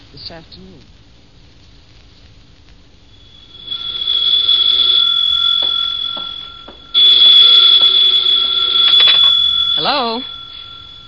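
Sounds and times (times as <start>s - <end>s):
speech: 0.1s - 1.0s, 9.8s - 10.4s
telephone ringing: 3.1s - 11.0s.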